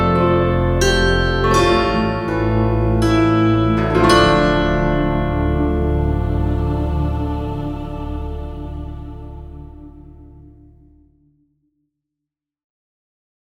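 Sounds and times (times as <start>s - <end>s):
bandura: 0.0s - 8.1s.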